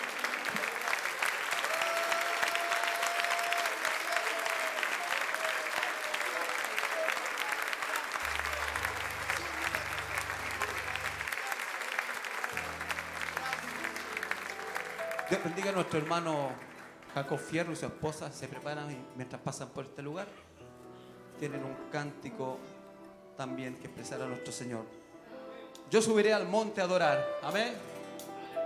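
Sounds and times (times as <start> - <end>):
audience applause: 0.0 - 17.9
speech: 15.3 - 20.5, 21.4 - 22.7, 23.4 - 25.0, 25.9 - 28.0.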